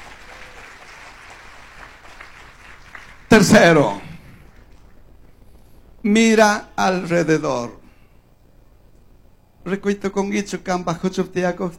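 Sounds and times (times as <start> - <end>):
audience applauding: 0.0 - 5.0
speech: 3.4 - 4.0, 6.0 - 7.8, 9.6 - 11.7.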